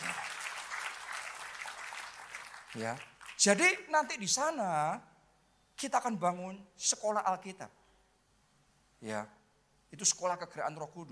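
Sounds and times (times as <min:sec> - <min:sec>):
crowd applauding: 0:00.0 - 0:03.5
speech: 0:02.7 - 0:05.1, 0:05.8 - 0:07.8, 0:09.0 - 0:11.0.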